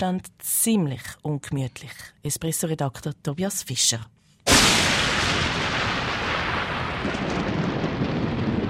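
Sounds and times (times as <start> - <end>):
speech: 0.0 - 4.9
thunderclap from lightning strike: 4.5 - 8.6.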